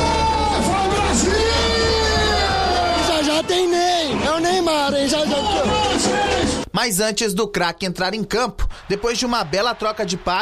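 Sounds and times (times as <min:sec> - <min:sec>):
football fans cheering in a bar watching Brazil's national team: 0:00.0 - 0:06.7, 0:08.8 - 0:10.3
speech: 0:06.8 - 0:10.3.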